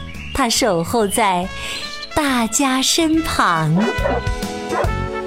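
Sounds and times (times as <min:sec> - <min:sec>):
speech: 0:00.4 - 0:04.4
big dog barking: 0:03.7 - 0:05.1.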